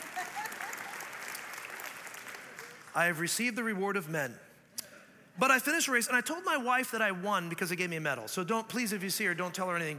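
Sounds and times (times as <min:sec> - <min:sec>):
audience clapping: 0:00.0 - 0:03.4
speech: 0:02.9 - 0:04.5, 0:05.4 - 0:09.9.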